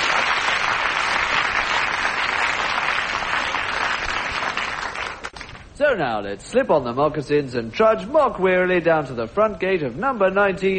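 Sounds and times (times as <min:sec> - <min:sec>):
audience applause: 0:00.0 - 0:05.5
speech: 0:05.8 - 0:10.7.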